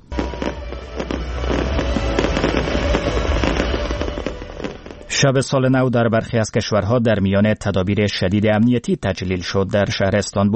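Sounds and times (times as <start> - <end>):
New Year fireworks bangs and crackles: 0.0 - 5.3
low rumble: 0.0 - 5.5
speech: 5.2 - 10.5.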